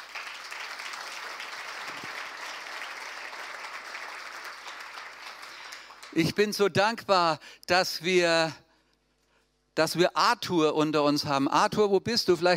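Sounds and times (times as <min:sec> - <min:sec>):
audience clapping: 0:00.0 - 0:06.6
speech: 0:06.1 - 0:08.6, 0:09.8 - 0:12.5.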